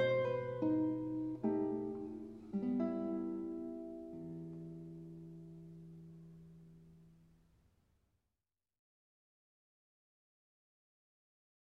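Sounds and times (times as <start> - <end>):
guitar playing a mazurka: 0.0 - 7.1.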